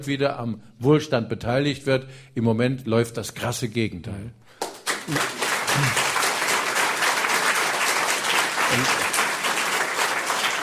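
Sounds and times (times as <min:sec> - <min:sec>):
speech: 0:00.0 - 0:06.0, 0:08.7 - 0:09.0
studio audience applause: 0:04.6 - 0:10.6
laughter: 0:05.1 - 0:06.3, 0:08.6 - 0:09.4.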